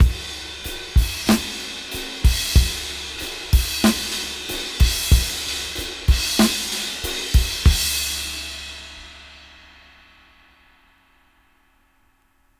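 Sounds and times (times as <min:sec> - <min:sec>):
slow half-time beat at 94 BPM: 0:00.0 - 0:09.6.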